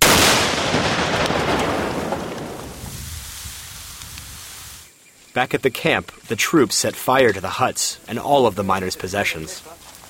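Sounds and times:
dynamite blowing up a mining dredging platform: 0.0 - 4.8
speech: 5.4 - 9.8.

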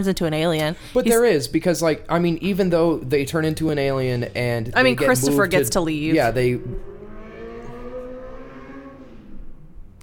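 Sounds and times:
speech: 0.0 - 6.9
car racing past outside at night: 5.3 - 10.0.

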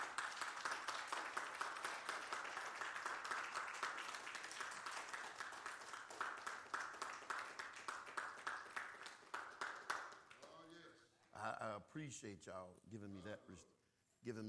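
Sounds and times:
audience hand clapping in praise: 0.0 - 10.8
speech: 11.6 - 14.4.

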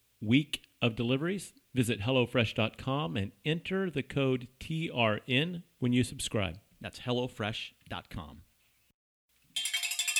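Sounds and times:
speech: 0.2 - 8.5
shop door chime at the Trail Runner Nation store: 9.6 - 10.1.

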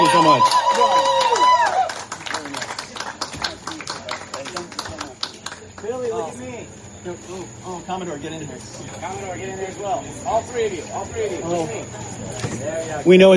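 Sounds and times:
crowd applause: 0.0 - 6.6
speech: 0.2 - 1.5, 6.2 - 13.3.

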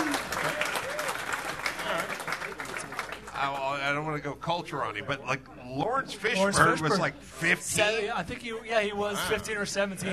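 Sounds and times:
audience clapping: 0.0 - 3.8
speech: 4.2 - 10.1.

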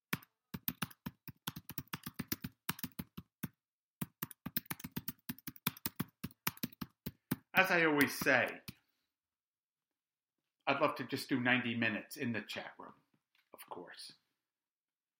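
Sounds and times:
typing on a computer keyboard: 0.2 - 7.4
speech: 7.6 - 8.6, 10.7 - 13.0, 13.8 - 14.2.

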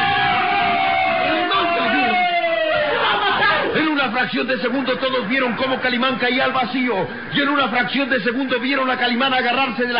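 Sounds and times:
crowd screaming in alarm: 0.0 - 7.3
speech: 4.0 - 9.9.

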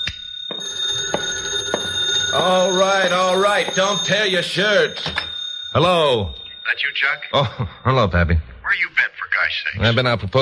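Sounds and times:
telephone bell ringing: 0.0 - 7.9
speech: 2.4 - 10.4.

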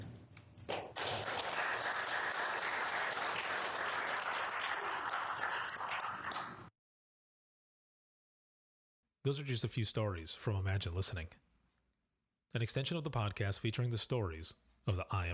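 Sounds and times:
audience applause: 0.8 - 6.6
speech: 9.2 - 11.5, 12.5 - 15.3.

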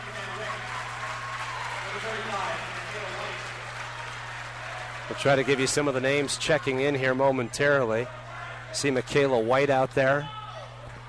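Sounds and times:
round of applause in gym: 0.0 - 6.8
speech: 5.1 - 10.4.

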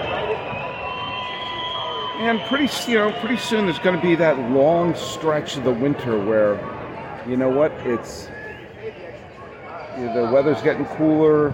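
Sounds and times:
baseball crowd booing a player: 0.0 - 6.9
speech: 2.2 - 8.3, 10.0 - 11.5.

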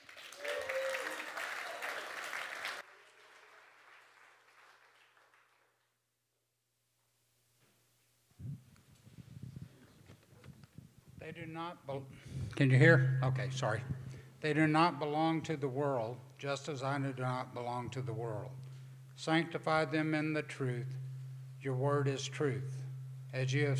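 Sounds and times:
audience applause: 0.0 - 5.7
speech: 11.3 - 18.6, 19.2 - 21.0, 21.6 - 23.7.

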